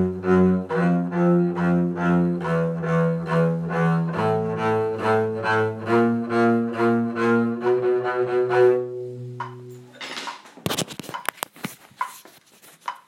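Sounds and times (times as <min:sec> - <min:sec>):
bass: 0:00.0 - 0:09.8.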